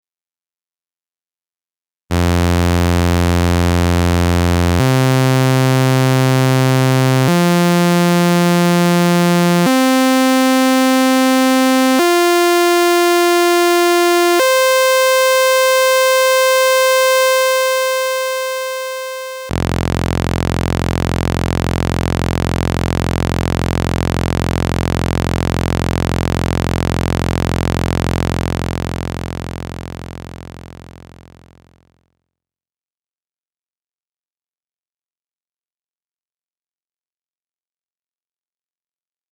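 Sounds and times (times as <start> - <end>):
sawtooth wave A note: 2.1 - 31.7.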